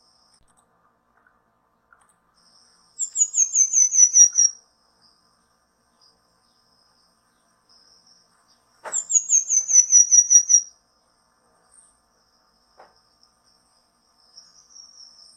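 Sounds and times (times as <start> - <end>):
Pin-tailed manakin song: 3.0 - 4.6, 8.9 - 10.7.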